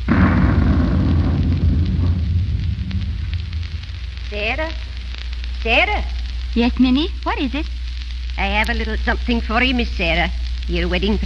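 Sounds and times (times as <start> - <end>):
thunderstorm thunder: 0.0 - 5.4
speech: 4.6 - 4.9, 5.6 - 7.8, 8.4 - 11.2.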